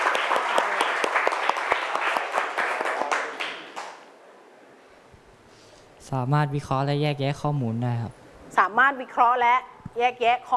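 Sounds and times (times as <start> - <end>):
classroom applause: 0.0 - 4.1
speech: 6.1 - 10.5.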